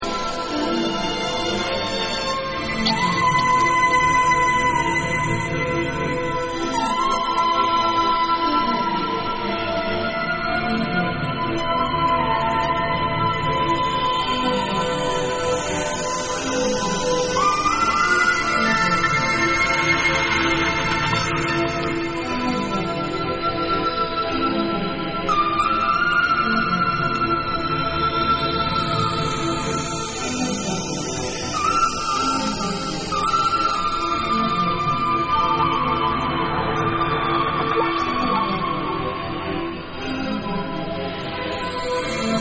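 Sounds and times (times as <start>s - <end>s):
ambient music mix: 0.0s - 42.3s.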